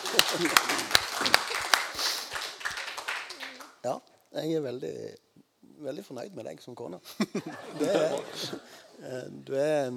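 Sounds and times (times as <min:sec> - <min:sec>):
laughter: 0:00.0 - 0:02.2, 0:07.1 - 0:08.9
hand clapping: 0:00.0 - 0:03.8
speech: 0:00.1 - 0:02.1, 0:03.8 - 0:05.2, 0:05.8 - 0:09.9.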